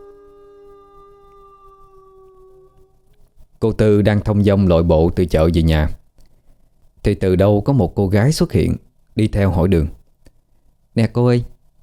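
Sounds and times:
dog howling: 0:00.0 - 0:03.2
speech: 0:03.7 - 0:06.0, 0:07.0 - 0:10.0, 0:11.0 - 0:11.5.

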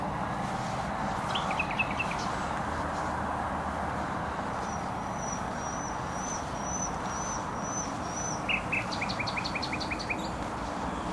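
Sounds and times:
dense roar of traffic: 0:00.0 - 0:11.1
nightingale song: 0:01.2 - 0:02.7, 0:04.3 - 0:11.1.

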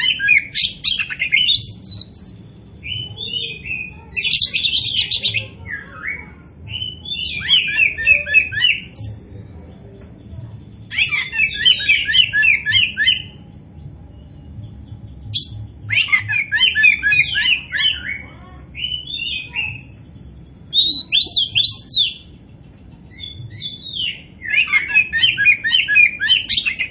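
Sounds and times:
Oriental magpie-robin singing: 0:00.0 - 0:26.8.

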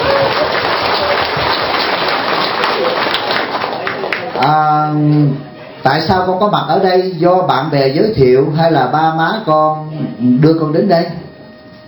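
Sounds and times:
audience applause at a temple gathering: 0:00.0 - 0:04.5
speech: 0:04.4 - 0:11.2.

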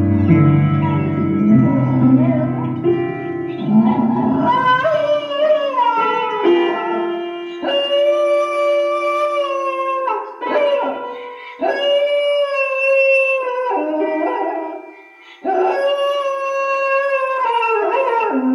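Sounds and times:
dog howling: 0:00.2 - 0:18.4.

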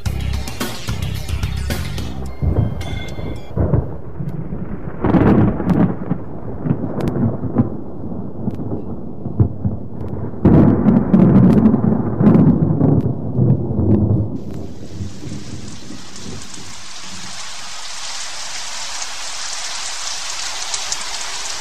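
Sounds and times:
rain: 0:00.0 - 0:21.6
thunder: 0:02.4 - 0:17.4.

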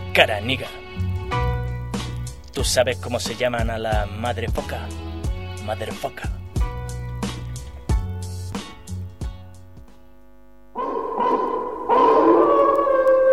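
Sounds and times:
low steady instrumental tones with sharp plucked accents: 0:00.0 - 0:09.9
speech: 0:00.2 - 0:00.8, 0:02.6 - 0:06.4
long wavering howls in a Caribbean freak folk song: 0:10.8 - 0:13.3.

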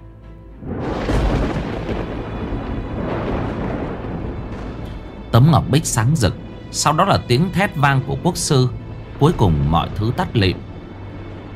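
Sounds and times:
deafening thunderbolt striking a jade plate: 0:00.6 - 0:07.6
speech: 0:05.4 - 0:10.7.

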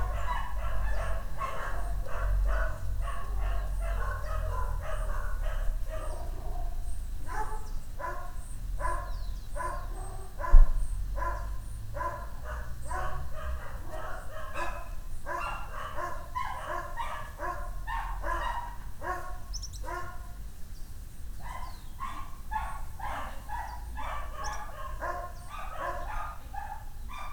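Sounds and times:
dog barking: 0:00.0 - 0:20.4, 0:21.4 - 0:27.3
high bird chirp: 0:06.0 - 0:11.8, 0:19.5 - 0:19.9, 0:20.7 - 0:22.1, 0:23.6 - 0:26.2.

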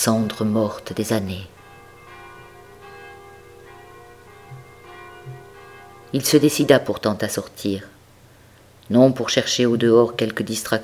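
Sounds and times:
speech: 0:00.0 - 0:01.6, 0:06.1 - 0:08.0, 0:08.9 - 0:10.8
church bells ringing in a steady peal on a grey November day: 0:00.0 - 0:08.1.

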